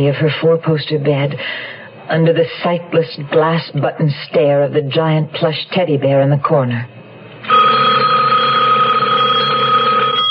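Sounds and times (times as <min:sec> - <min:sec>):
speech: 0:00.0 - 0:07.6
telephone bell ringing: 0:07.5 - 0:10.2.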